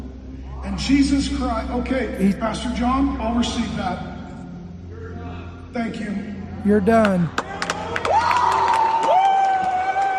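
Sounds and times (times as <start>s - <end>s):
speech: 0.8s - 4.1s, 5.7s - 7.4s
roaring crowd applause: 7.3s - 10.1s.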